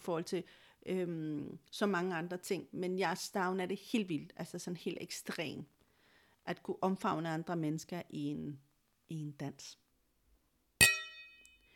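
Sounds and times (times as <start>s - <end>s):
speech: 0.0s - 5.8s, 6.4s - 9.8s
glasses clinking in a toast: 10.8s - 11.6s.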